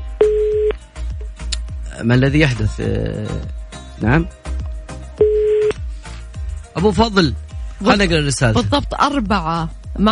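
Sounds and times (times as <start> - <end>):
telephone call being dialed on a radio show, beep: 0.2 - 0.7, 5.2 - 5.7
speech: 2.0 - 4.4, 6.8 - 10.1.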